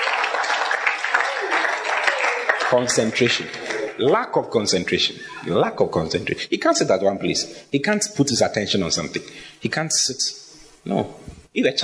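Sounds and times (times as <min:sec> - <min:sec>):
audience clapping: 0:00.0 - 0:04.4
speech: 0:02.7 - 0:11.8.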